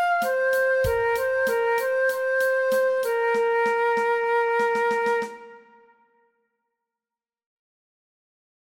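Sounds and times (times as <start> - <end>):
transverse flute playing an alternate play-along track: 0.0 - 6.3.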